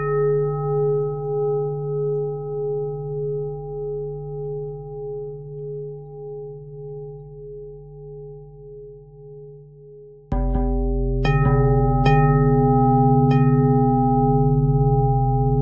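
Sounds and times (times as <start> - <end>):
pentatonic bell melody: 0.0 - 5.4, 10.3 - 15.5.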